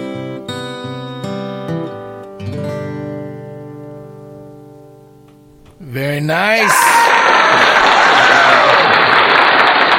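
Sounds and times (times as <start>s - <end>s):
speech: 6.0s - 7.3s
loud audience applause: 6.6s - 9.9s.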